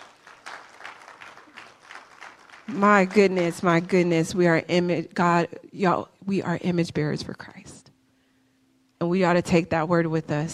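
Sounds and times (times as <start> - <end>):
crowd, audience clapping: 0.0 - 4.3
speech: 2.7 - 7.7, 9.1 - 10.5.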